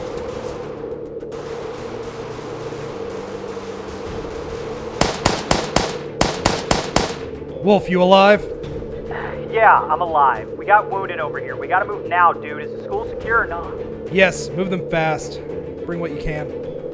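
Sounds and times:
gunshots at a house: 0:01.3 - 0:07.4
speech: 0:07.7 - 0:08.5, 0:09.5 - 0:16.7.

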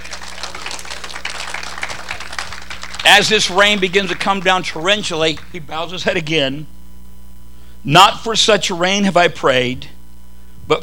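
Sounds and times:
audience clapping hands in praise: 0:00.0 - 0:05.7
speech: 0:03.1 - 0:06.8, 0:07.8 - 0:09.9.

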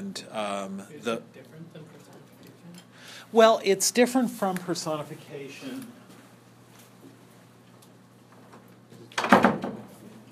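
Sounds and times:
speech: 0:00.2 - 0:02.0, 0:03.2 - 0:06.0
door closing thump: 0:09.2 - 0:09.9.

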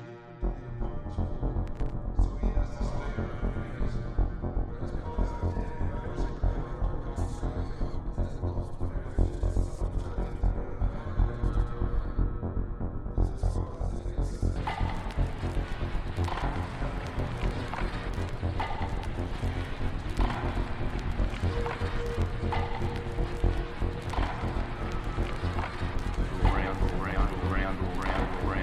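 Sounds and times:
steady low hum: 0:01.3 - 0:28.6
crowd murmur at the US Open tennis courts: 0:14.6 - 0:28.6.

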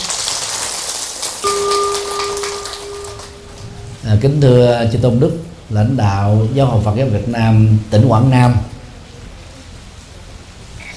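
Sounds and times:
applause: 0:00.0 - 0:03.7
speech: 0:04.1 - 0:08.7.

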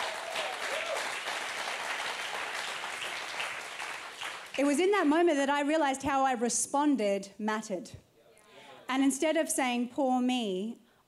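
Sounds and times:
audience clapping: 0:00.0 - 0:05.0
speech: 0:04.6 - 0:08.0, 0:08.9 - 0:11.0.

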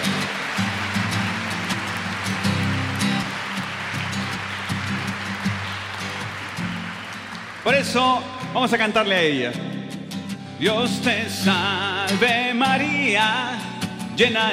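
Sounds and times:
audience applause: 0:00.0 - 0:09.2
speech: 0:07.7 - 0:09.7, 0:10.6 - 0:14.5.

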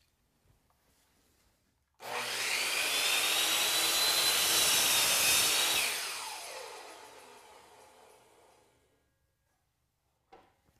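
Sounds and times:
power saw blade making a bevel cut in wood molding: 0:02.0 - 0:08.8.

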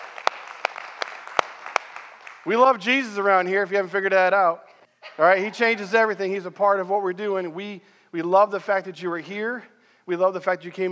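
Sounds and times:
sparse handclaps from a church congregation welcoming guests: 0:00.0 - 0:02.6
faint noise: 0:00.0 - 0:10.9
speech: 0:02.4 - 0:10.9.

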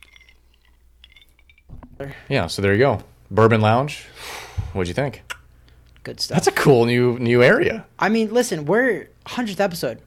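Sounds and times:
glasses clinking in a toast: 0:00.0 - 0:02.3
speech: 0:02.0 - 0:05.3, 0:06.0 - 0:10.0.

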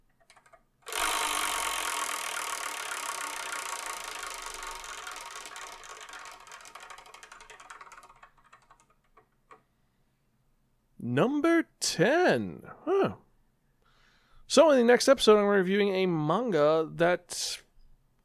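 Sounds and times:
Wheel of Manga prize wheel spinning: 0:00.2 - 0:09.6
speech: 0:11.0 - 0:13.2, 0:14.6 - 0:17.6.

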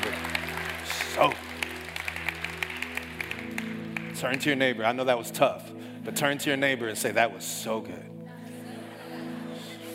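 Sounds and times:
audience clapping: 0:00.0 - 0:04.7
speech: 0:01.2 - 0:01.5, 0:04.2 - 0:08.1.

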